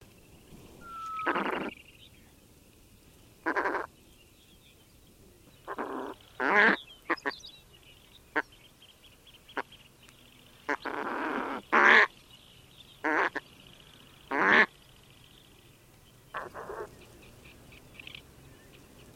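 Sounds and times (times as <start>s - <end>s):
low background hiss: 0.0s - 19.1s
Steller's eider calling: 0.8s - 1.8s, 3.4s - 3.9s, 5.6s - 7.4s, 10.7s - 12.1s, 13.0s - 13.4s, 14.3s - 14.7s, 16.3s - 16.9s.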